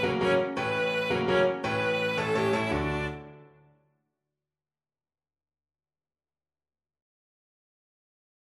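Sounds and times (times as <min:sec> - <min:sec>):
violoncello: 0:00.0 - 0:03.4.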